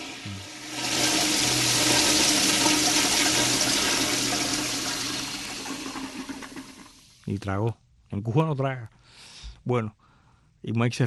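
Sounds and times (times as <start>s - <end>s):
toilet flushing: 0.0s - 7.3s
speech: 7.3s - 10.0s, 10.6s - 11.0s.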